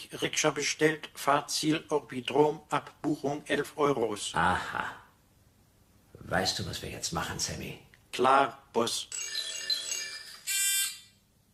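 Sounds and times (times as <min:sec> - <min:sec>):
speech: 0:00.0 - 0:05.0, 0:06.3 - 0:09.5
electronic doorbell ringing with two tones: 0:09.1 - 0:11.2.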